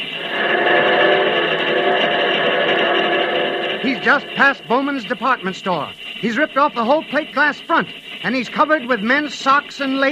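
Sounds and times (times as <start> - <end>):
scream turning into locomotive whistle: 0.0 - 7.8
speech: 3.8 - 10.1.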